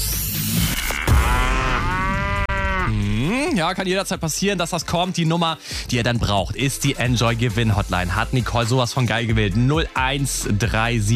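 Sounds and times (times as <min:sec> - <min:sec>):
cow moo sound effect as a radio contest signal: 0:01.0 - 0:03.5
speech: 0:03.6 - 0:11.1.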